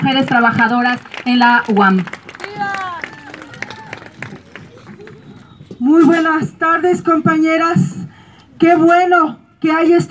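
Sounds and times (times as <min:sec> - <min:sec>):
speech: 0:00.0 - 0:02.7, 0:05.9 - 0:08.0, 0:08.6 - 0:10.1
audience applause: 0:01.0 - 0:05.5
crowd murmur: 0:02.4 - 0:05.8.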